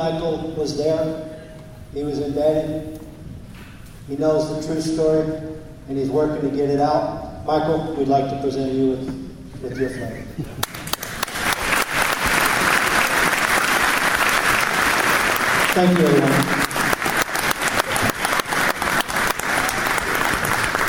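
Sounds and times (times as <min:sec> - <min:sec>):
speech: 0:00.0 - 0:03.1, 0:04.1 - 0:10.7, 0:15.8 - 0:16.6
audience applause: 0:10.6 - 0:20.8.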